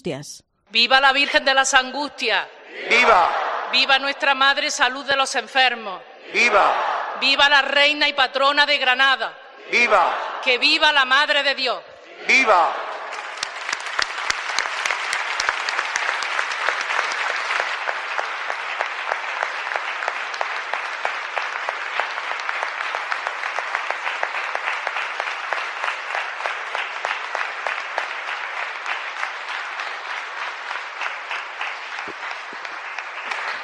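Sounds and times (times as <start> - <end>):
speech: 0.0 - 12.8
cheering at a church celebration: 2.7 - 4.2, 6.2 - 7.4, 9.6 - 10.9, 12.0 - 33.6
applause at a church celebration: 2.9 - 4.2, 12.3 - 33.6.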